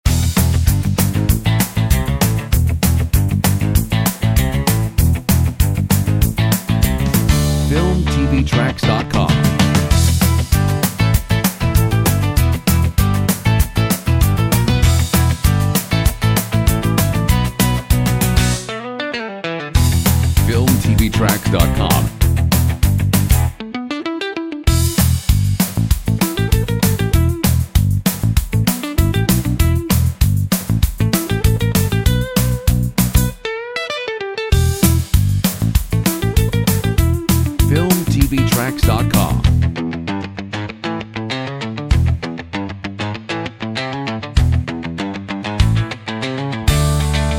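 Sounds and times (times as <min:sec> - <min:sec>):
pop rock party music: 0:00.0 - 0:47.3.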